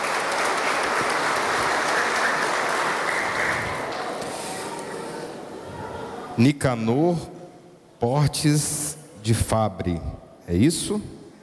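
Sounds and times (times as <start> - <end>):
crowd applauding: 0.0 - 4.5
speech: 6.4 - 7.4, 8.0 - 11.2.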